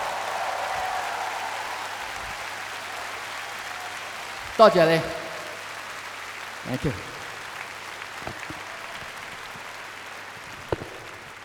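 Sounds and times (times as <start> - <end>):
audience applause: 0.0 - 11.4
speech: 4.6 - 5.2, 6.6 - 7.2.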